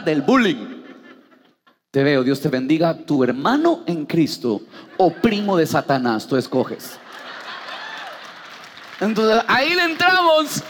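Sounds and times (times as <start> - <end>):
speech: 0.0 - 0.7, 2.0 - 7.0, 9.0 - 10.6
laughter: 0.0 - 1.8, 6.8 - 8.6
audience applause: 7.1 - 10.6.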